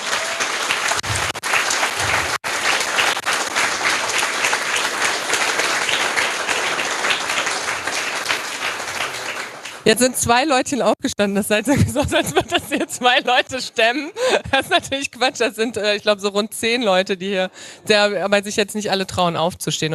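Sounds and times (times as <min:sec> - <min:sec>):
audience applause: 0:00.0 - 0:09.9
speech: 0:09.9 - 0:19.9.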